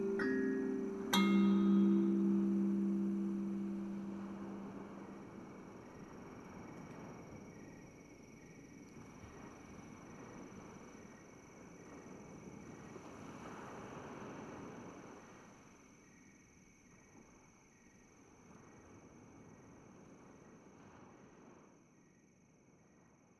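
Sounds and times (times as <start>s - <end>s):
kalimba: 0.0s - 5.4s.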